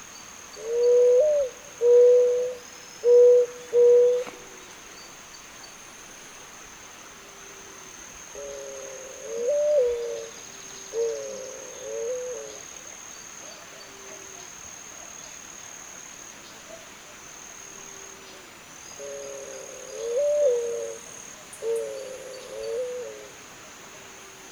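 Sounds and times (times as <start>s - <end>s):
Zenaida dove giving low even coos: 0.6s - 4.6s, 8.4s - 12.6s, 19.0s - 23.4s.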